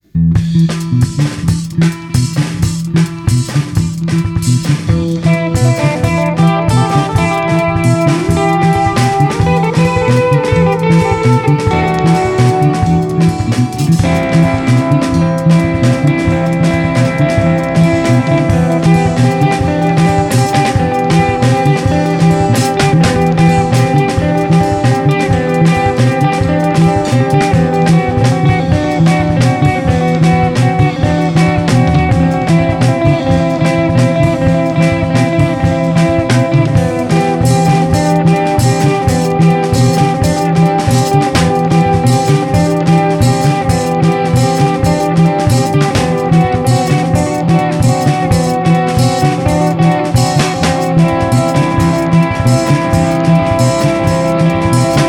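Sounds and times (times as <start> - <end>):
samba music: 0.0 - 55.0.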